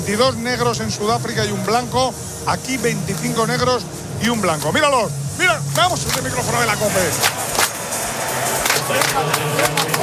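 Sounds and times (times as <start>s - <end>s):
speech: 0.1s - 7.4s, 8.9s - 10.0s
crowd clapping in a South African folk rhythm: 5.7s - 6.4s, 7.1s - 10.0s.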